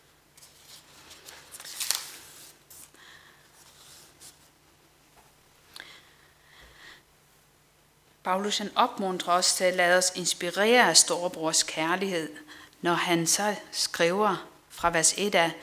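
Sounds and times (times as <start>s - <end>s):
paper rustling: 0.3s - 4.8s
book page turning during a Danish sermon: 0.4s - 4.6s
speech: 8.3s - 15.6s.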